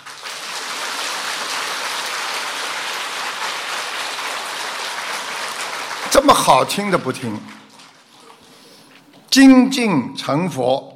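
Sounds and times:
audience applause: 0.0s - 8.1s
speech: 6.1s - 7.6s, 9.4s - 10.9s.

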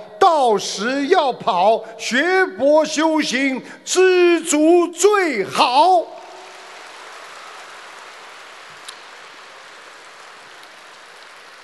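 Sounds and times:
speech: 0.3s - 6.2s
audience applause: 6.2s - 11.6s.

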